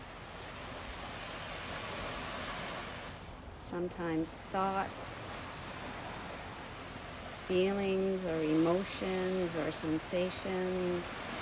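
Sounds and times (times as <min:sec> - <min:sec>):
ocean waves on a Bahamas shore: 0:00.0 - 0:11.4
speech: 0:03.7 - 0:05.4, 0:07.5 - 0:11.4.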